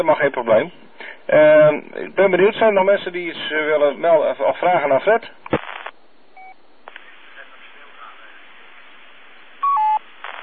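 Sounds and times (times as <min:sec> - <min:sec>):
speech: 0:00.0 - 0:05.4
continuous beep on the line: 0:06.4 - 0:06.6, 0:09.6 - 0:10.4.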